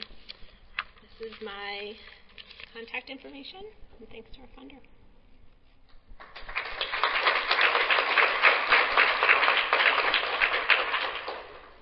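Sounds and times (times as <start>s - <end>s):
speech: 1.2s - 2.2s, 2.8s - 5.0s
audience applause: 6.2s - 11.8s.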